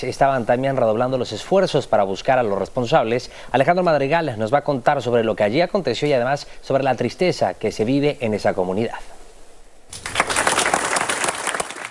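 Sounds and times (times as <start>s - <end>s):
speech: 0.0s - 9.2s
applause at a farewell: 9.9s - 11.8s.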